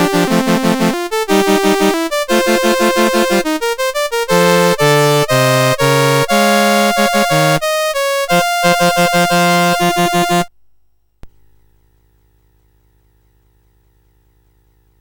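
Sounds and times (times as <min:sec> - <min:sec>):
chiptune music on a SID CSG 8580R5 chip: 0:00.0 - 0:10.5.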